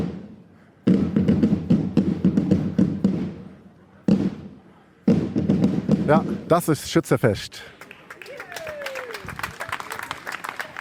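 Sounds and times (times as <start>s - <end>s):
marching drum group drumming: 0.0s - 6.7s
speech: 6.1s - 7.8s.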